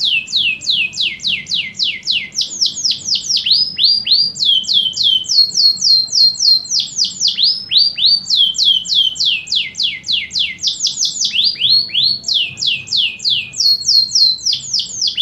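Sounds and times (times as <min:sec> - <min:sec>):
canary singing descending whistled notes: 0:00.0 - 0:15.2.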